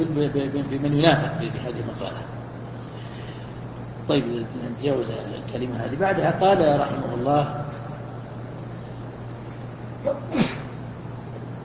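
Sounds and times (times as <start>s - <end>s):
speech: 0.0s - 2.4s, 4.0s - 7.6s
sneeze: 10.0s - 10.8s.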